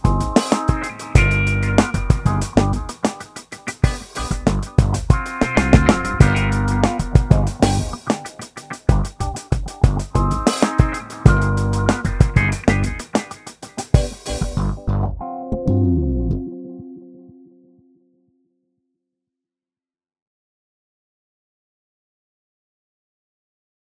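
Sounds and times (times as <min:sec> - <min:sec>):
desert roots funk music: 0:00.0 - 0:17.6.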